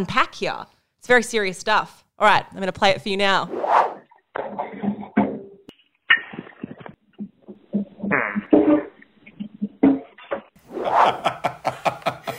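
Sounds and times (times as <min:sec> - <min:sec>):
speech: 0:00.0 - 0:04.6
squeaky fart: 0:06.1 - 0:10.4
laughter: 0:10.8 - 0:12.3.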